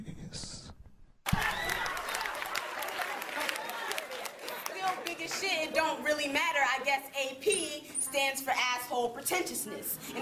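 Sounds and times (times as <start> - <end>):
applause: 1.2 - 5.8
speech: 5.4 - 10.2.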